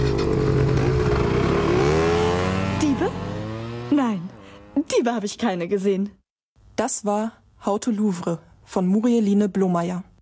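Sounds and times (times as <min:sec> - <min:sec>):
small motor scooter engines revving: 0:00.0 - 0:04.9
speech: 0:04.9 - 0:06.2, 0:06.8 - 0:10.1.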